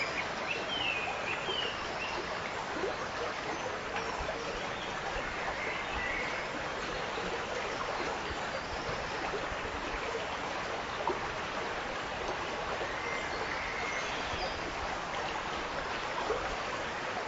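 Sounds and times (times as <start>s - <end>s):
babbling brook stream: 0.0s - 17.2s.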